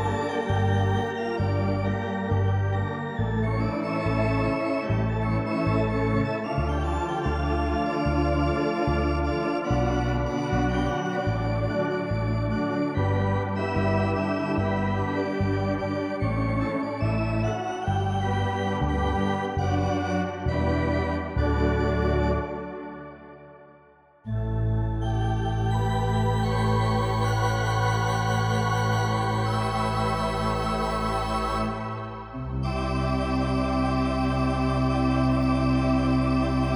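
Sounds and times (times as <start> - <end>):
Hammond organ: 0.0 - 36.7.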